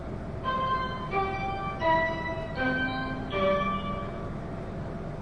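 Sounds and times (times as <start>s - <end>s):
tape music box playing on a bus in Kawaramachi Kyoto Kansai: 0.4s - 5.1s.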